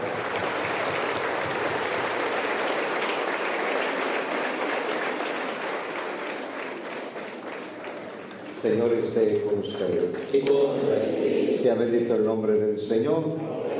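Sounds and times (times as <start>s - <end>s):
audience applauding: 0.0s - 10.3s
speech: 8.6s - 13.4s.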